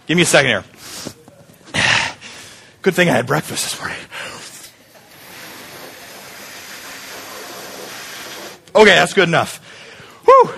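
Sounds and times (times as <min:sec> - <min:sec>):
speech: 0:00.1 - 0:01.2, 0:02.8 - 0:04.4, 0:08.8 - 0:09.7, 0:10.4 - 0:10.5
blowing up a balloon by mouth: 0:05.1 - 0:08.7.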